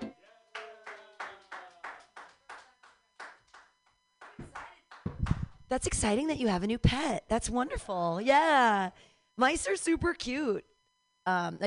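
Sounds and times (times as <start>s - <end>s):
rhythmic clapping: 0.0s - 5.6s
speech: 5.7s - 11.6s.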